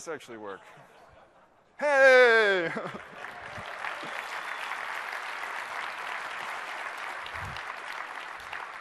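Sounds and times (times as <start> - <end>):
speech: 0.0 - 1.0, 1.8 - 4.2
audience applause: 2.2 - 8.7.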